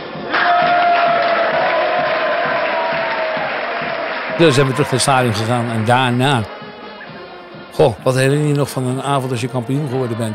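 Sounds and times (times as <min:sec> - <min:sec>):
warm applause from audience: 0:00.0 - 0:06.6
speech: 0:04.4 - 0:06.6, 0:07.8 - 0:10.3.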